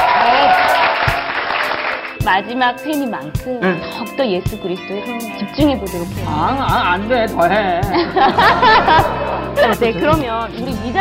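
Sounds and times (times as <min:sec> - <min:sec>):
audience applause: 0:00.0 - 0:02.2
speech: 0:02.3 - 0:10.9
laughter: 0:07.6 - 0:10.4.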